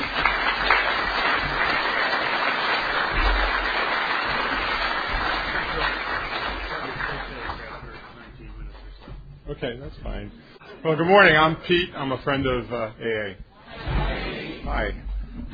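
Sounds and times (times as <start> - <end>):
audience applause welcoming a speaker at a talk on alcoholism: 0.0 - 8.7
speech: 9.6 - 13.9, 14.7 - 15.0.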